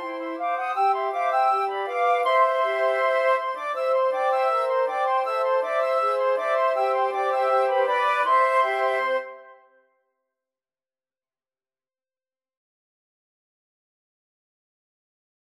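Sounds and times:
flute choir: 0.0s - 9.7s.

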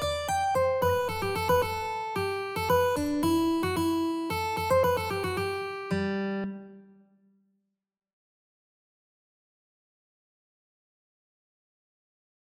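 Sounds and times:
mandolin in a mandolin-cello duet: 0.0s - 6.8s.

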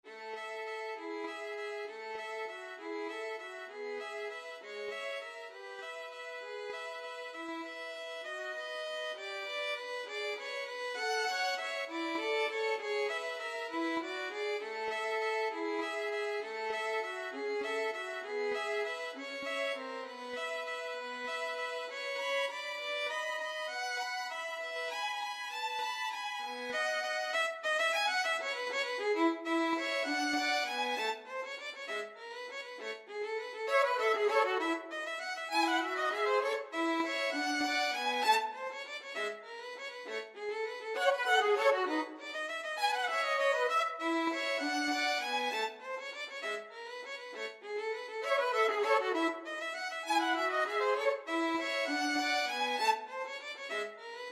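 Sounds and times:
violin duet playing a waltz: 0.0s - 54.2s.

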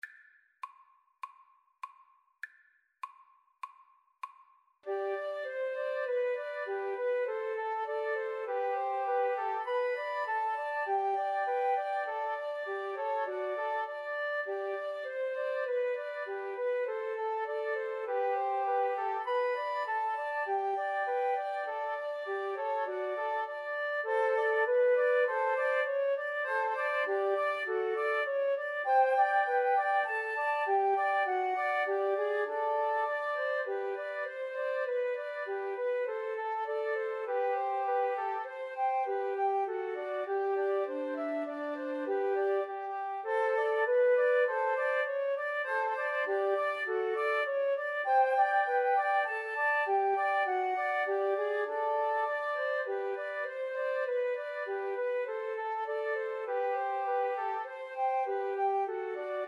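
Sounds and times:
flute trio playing: 4.9s - 59.4s.

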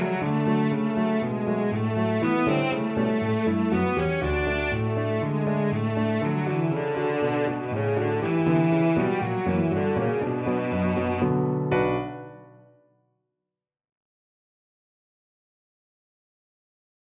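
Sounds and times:
violoncello: 0.0s - 12.5s.

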